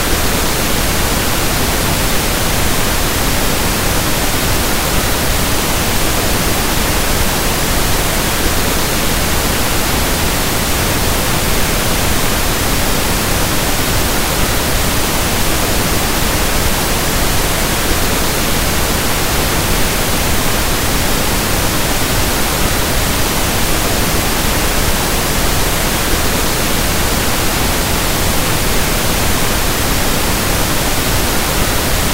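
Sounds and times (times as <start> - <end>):
pink noise: 0.0 - 32.1.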